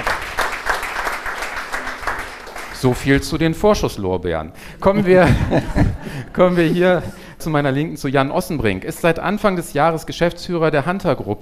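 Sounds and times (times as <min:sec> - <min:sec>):
audience applause at a business event welcoming a speaker: 0:00.0 - 0:03.0
speech: 0:02.8 - 0:11.4
laughter: 0:04.8 - 0:07.3.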